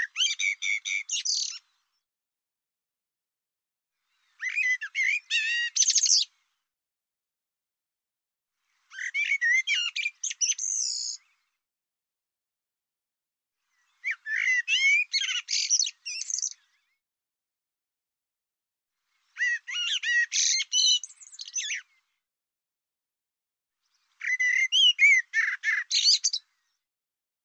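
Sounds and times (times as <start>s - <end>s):
bird song: 0.0s - 2.1s, 4.0s - 6.7s, 8.6s - 11.6s, 13.6s - 17.0s, 19.0s - 22.2s, 23.8s - 26.9s.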